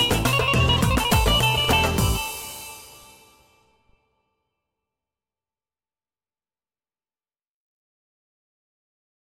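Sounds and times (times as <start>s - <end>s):
Yamaha OR700 electronic baglama: 0.0s - 4.2s.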